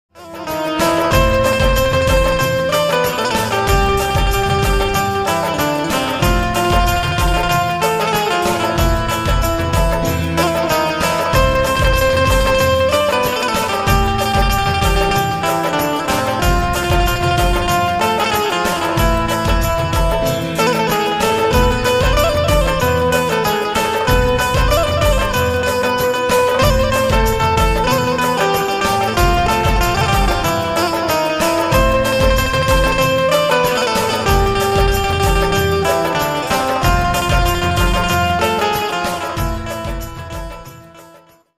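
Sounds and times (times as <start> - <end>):
deshbhakti special ringtone banjo cover song: 0.1 - 41.5.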